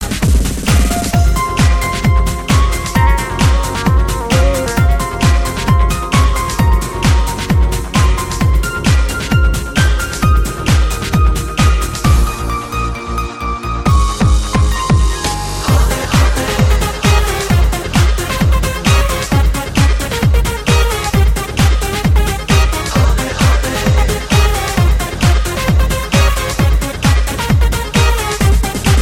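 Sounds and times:
piano: 0.0 - 29.0.

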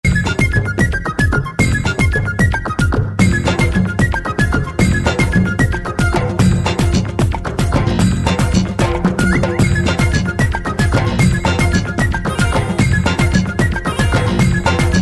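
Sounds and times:
folk music: 0.0 - 15.0.

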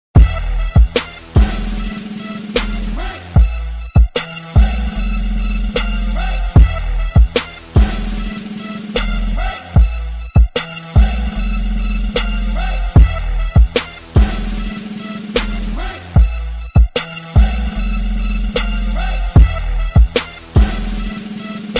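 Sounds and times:
Cristal Bass: 0.1 - 21.7.

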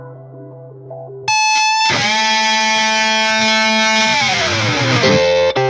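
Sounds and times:
flip flop ringtone: 1.3 - 5.6.

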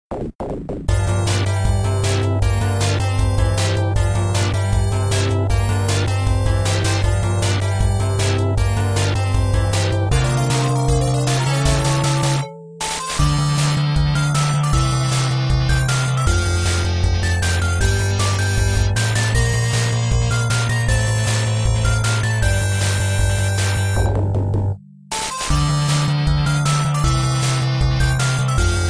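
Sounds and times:
arcade ambience: 0.1 - 28.8.

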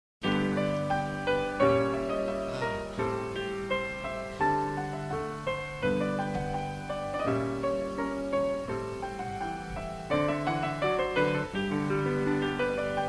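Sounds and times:
music: 0.2 - 13.0.

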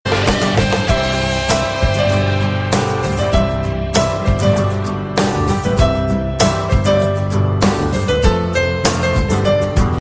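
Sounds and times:
sweet instrumental music: 0.1 - 9.9.

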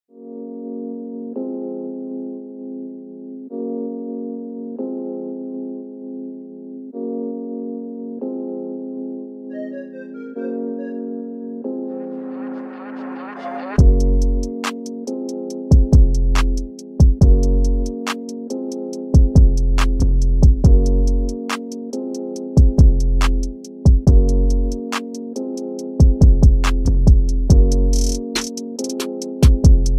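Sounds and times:
music beat: 9.5 - 11.3, 12.4 - 29.9.

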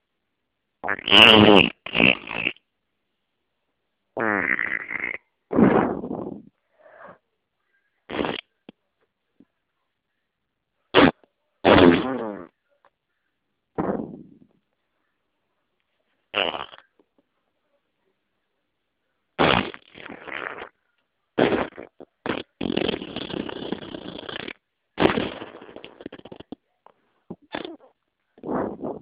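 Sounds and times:
fart: 0.8 - 2.6, 4.2 - 6.6, 8.1 - 8.5, 11.0 - 12.5, 13.8 - 14.6, 16.3 - 16.9, 19.4 - 20.7, 21.4 - 26.6, 27.3 - 29.0.

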